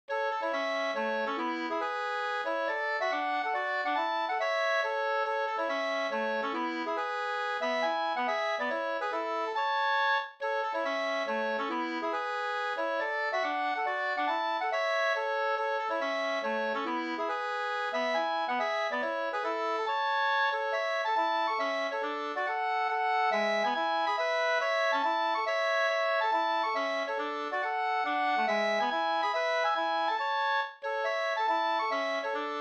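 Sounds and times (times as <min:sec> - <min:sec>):
hambo polska folk dance tune: 0:00.1 - 0:32.5.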